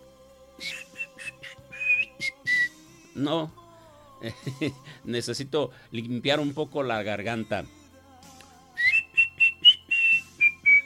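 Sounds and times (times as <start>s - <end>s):
person trying to whistle: 0.6s - 2.8s, 8.8s - 10.8s
speech: 3.2s - 3.6s, 4.2s - 7.8s.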